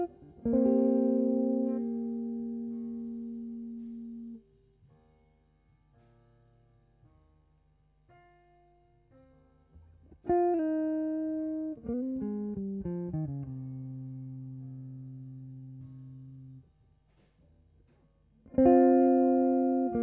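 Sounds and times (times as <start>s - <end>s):
guitar: 0.0s - 5.0s, 9.8s - 16.6s, 18.4s - 20.0s.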